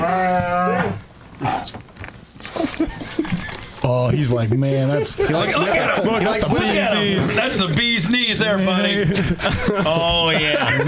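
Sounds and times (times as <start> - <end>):
riled-up bear growling: 0.0 - 1.8
laughter: 2.4 - 10.8
speech: 3.8 - 10.8.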